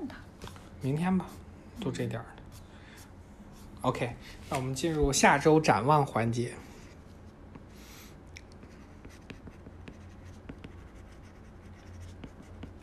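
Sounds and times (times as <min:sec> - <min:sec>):
speech: 0:00.8 - 0:02.4, 0:03.8 - 0:06.7
pen writing on paper: 0:08.6 - 0:12.8.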